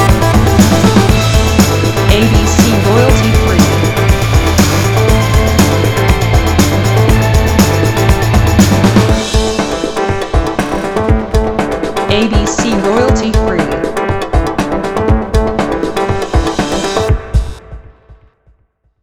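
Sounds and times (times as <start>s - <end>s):
electronic rock action music: 0.0s - 18.2s.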